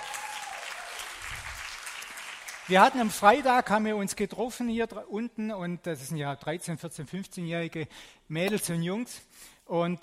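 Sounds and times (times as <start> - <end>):
audience applause: 0.0 - 3.2
speech: 2.7 - 10.0.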